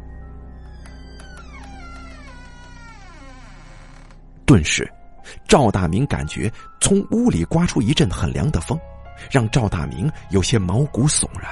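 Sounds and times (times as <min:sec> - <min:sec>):
door slowly creaking open: 0:00.5 - 0:04.3
speech: 0:04.5 - 0:11.5.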